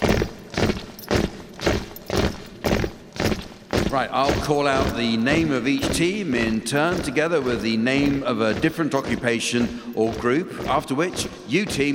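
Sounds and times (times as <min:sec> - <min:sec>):
marching feet of the King's Own Grenadier Guards: 0:00.0 - 0:11.9
speech: 0:04.0 - 0:11.9.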